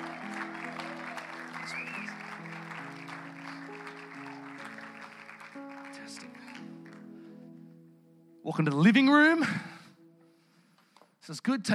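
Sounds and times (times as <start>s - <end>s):
audience applause welcoming a couple onto the stage: 0.0s - 7.0s
speech: 8.4s - 9.7s, 11.3s - 11.7s.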